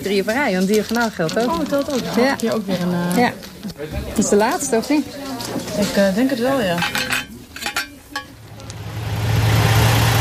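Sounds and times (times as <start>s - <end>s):
speech: 0.0s - 7.1s
bus engine droning during a short ride home: 8.3s - 10.2s.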